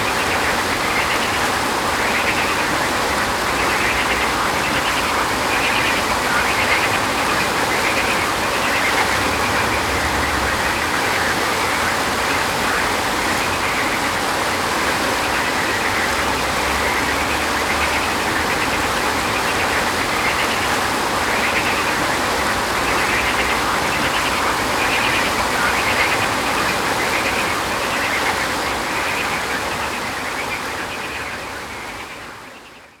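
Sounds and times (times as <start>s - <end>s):
river flowing: 0.0s - 32.6s
frogs croaking: 0.0s - 32.9s.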